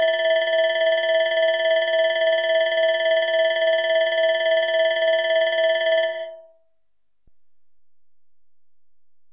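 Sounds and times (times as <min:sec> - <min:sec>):
electronic alarm bell: 0:00.0 - 0:06.6.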